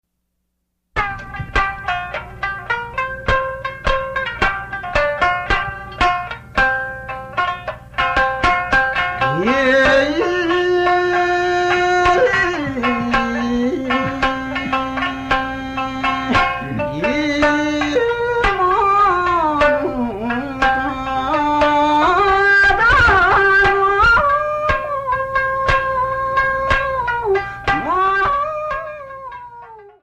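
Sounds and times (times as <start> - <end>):
Japanese folk music: 1.0 - 30.0.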